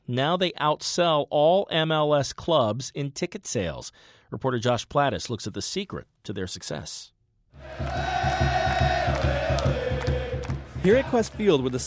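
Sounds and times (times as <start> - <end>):
speech: 0.1 - 8.9, 10.8 - 11.8
stadium crowd cheering: 7.6 - 11.8
steady rapid drumbeat: 7.6 - 11.8.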